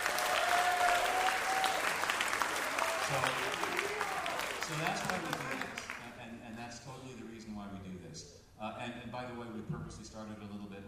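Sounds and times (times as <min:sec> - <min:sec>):
crowd clapping: 0:00.0 - 0:06.2
speech: 0:03.1 - 0:03.8, 0:04.7 - 0:05.8, 0:08.6 - 0:10.8.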